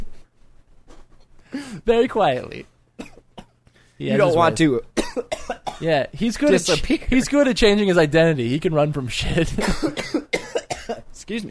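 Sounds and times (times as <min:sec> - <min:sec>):
speech: 0:01.8 - 0:02.7, 0:04.0 - 0:04.9, 0:05.8 - 0:10.3, 0:11.3 - 0:11.4
person coughing after choking on smoke: 0:03.0 - 0:03.6, 0:05.0 - 0:05.9, 0:06.5 - 0:07.1, 0:09.6 - 0:11.1.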